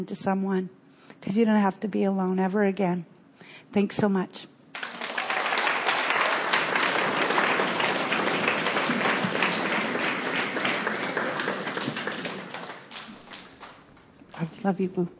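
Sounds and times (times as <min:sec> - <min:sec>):
speech: 0:00.0 - 0:03.1, 0:03.7 - 0:04.5, 0:14.6 - 0:15.1
applause: 0:04.7 - 0:14.6.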